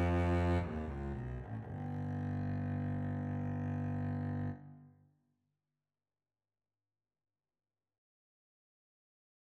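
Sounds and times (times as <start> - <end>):
double bass solo: 0.0 - 4.6.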